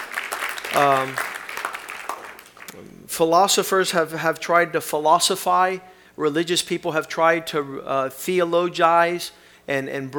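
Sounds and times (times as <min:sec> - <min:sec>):
audience clapping: 0:00.0 - 0:02.9
speech: 0:00.7 - 0:01.3, 0:02.7 - 0:10.1.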